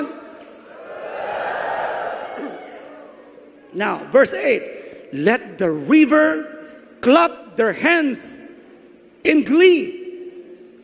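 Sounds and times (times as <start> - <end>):
audience shouting praise: 0.7 - 3.4
speech: 3.8 - 8.4, 9.2 - 10.0.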